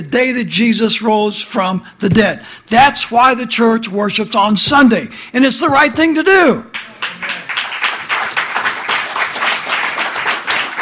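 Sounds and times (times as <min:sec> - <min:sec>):
speech: 0:00.0 - 0:07.3
audience clapping: 0:06.7 - 0:10.8.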